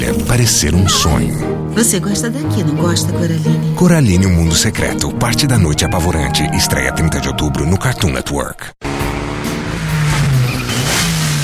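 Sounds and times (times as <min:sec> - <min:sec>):
speech: 0:00.4 - 0:09.0
Mitsubishi Lancer car engine revving in a car commercial: 0:08.8 - 0:11.4.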